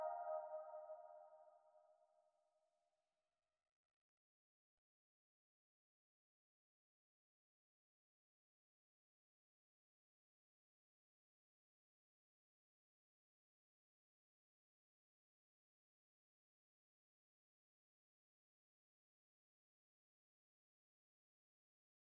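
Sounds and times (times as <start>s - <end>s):
87 BPM C minor flute lead melody in RnB: 0.0s - 1.0s.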